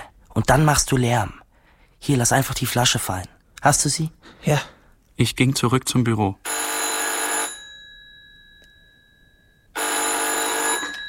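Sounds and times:
speech: 0.4s - 1.4s, 2.0s - 6.5s
telephone bell ringing: 6.4s - 11.0s.

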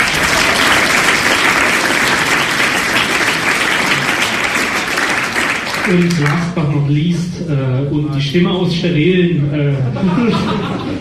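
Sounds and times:
audience applause: 0.0s - 6.6s
speech: 5.9s - 10.9s
laughter: 9.7s - 10.9s.

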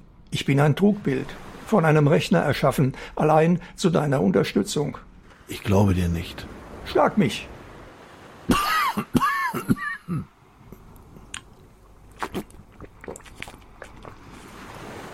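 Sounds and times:
speech: 0.3s - 7.5s
person coughing: 8.5s - 10.3s.

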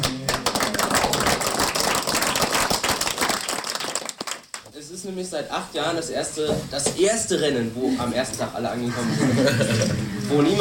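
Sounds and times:
group applause: 0.0s - 4.7s
speech: 5.0s - 10.5s
laughter: 8.8s - 10.5s.

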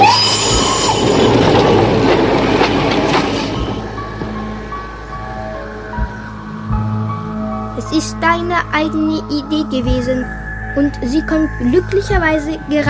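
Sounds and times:
old-fashioned steam train rumbling past: 0.0s - 12.8s
speech: 8.0s - 12.8s.

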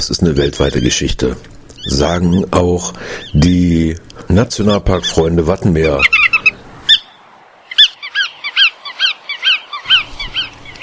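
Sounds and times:
speech: 0.0s - 6.4s
faint low noise: 0.0s - 10.8s
bar-tailed godwit giving nasal yelping calls: 1.7s - 3.5s, 5.0s - 10.8s.

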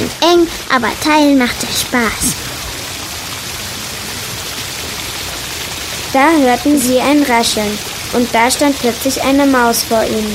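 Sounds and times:
steady rain pattering on a surface: 0.0s - 10.3s
speech: 0.2s - 2.5s, 6.1s - 10.3s.

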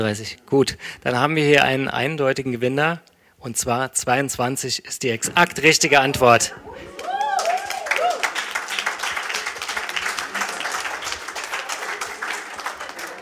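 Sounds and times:
speech: 0.0s - 7.0s
audience applause: 6.7s - 13.2s.

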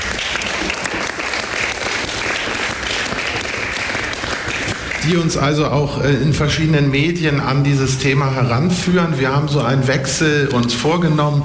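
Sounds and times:
audience applause: 0.0s - 5.5s
speech: 5.0s - 11.4s.

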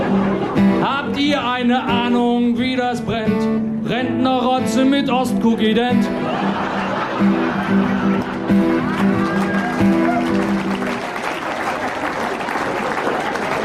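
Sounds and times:
laughter: 0.0s - 2.1s, 5.9s - 13.6s
speech: 1.2s - 6.6s
audience applause: 6.4s - 13.6s.

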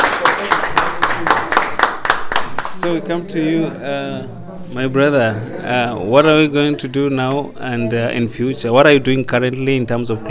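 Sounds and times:
audience clapping for a speaker after a climate change discussion: 0.0s - 3.0s
speech: 2.8s - 10.2s.

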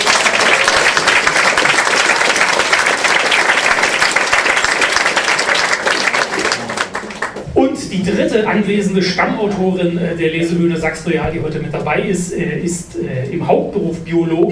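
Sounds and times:
audience at a literary reading stage clapping: 0.0s - 7.5s
speech: 8.0s - 14.5s.

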